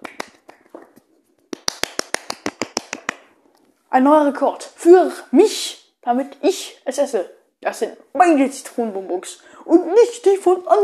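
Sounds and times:
hand clapping: 0.0s - 3.3s
speech: 3.9s - 10.8s.

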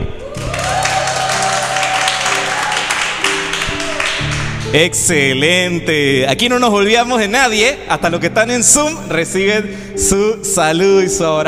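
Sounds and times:
shouts: 0.2s - 4.1s
crowd clapping: 0.2s - 5.1s
speech: 4.7s - 11.4s.

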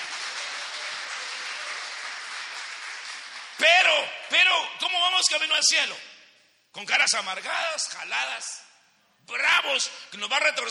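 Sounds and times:
audience clapping hands: 0.0s - 4.2s
speech: 3.6s - 6.1s, 6.8s - 10.7s.

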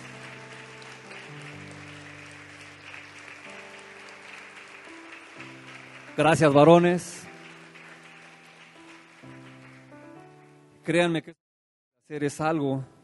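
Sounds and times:
audience applause: 0.0s - 10.6s
speech: 6.2s - 7.2s, 10.9s - 11.4s, 12.1s - 13.0s.

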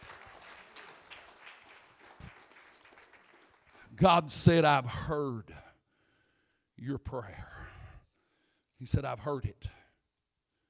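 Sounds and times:
audience clapping hands: 0.0s - 4.2s
speech: 4.0s - 5.6s, 6.8s - 7.5s, 8.8s - 9.8s.

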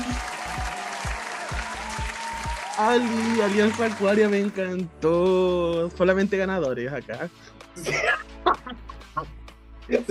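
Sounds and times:
crowd applauding: 0.0s - 4.9s
speech: 2.8s - 8.2s, 9.9s - 10.1s.

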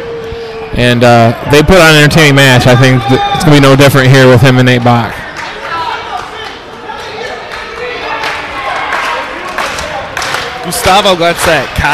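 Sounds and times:
speech: 0.8s - 5.2s, 10.6s - 11.9s
crowd cheering and clapping at wrestling match: 4.7s - 11.9s.

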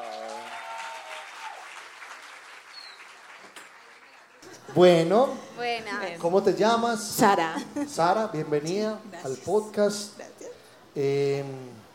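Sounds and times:
loud audience applause: 0.0s - 4.8s
speech: 4.7s - 10.3s, 11.0s - 11.8s.

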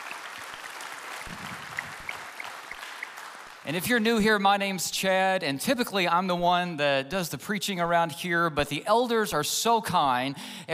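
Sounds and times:
church congregation applauding: 0.0s - 4.3s
speech: 3.7s - 10.7s.

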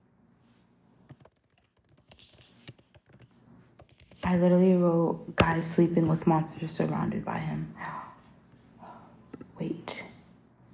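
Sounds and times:
typing on a computer keyboard: 1.1s - 4.4s
speech: 4.3s - 8.0s.

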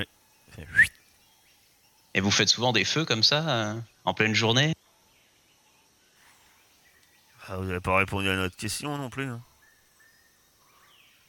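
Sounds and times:
person whistling: 0.6s - 1.0s
speech: 2.2s - 4.8s, 7.6s - 9.5s.

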